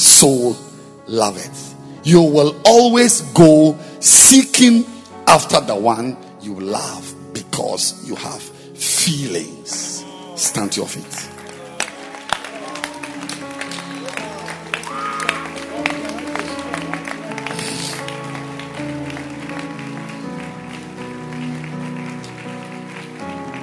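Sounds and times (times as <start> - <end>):
speech: 0.2 - 9.8, 10.4 - 11.4
audience clapping: 9.7 - 23.6.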